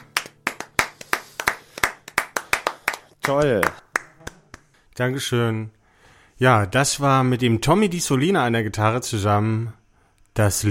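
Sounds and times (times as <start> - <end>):
one person clapping: 0.0 - 4.8
speech: 3.2 - 3.8, 5.0 - 5.8, 6.4 - 9.8, 10.4 - 10.6.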